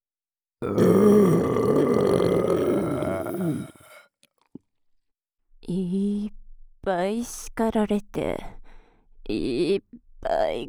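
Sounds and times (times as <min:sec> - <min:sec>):
speech: 0:00.6 - 0:01.5, 0:07.2 - 0:08.6, 0:09.3 - 0:10.6
loud burp: 0:00.6 - 0:04.0.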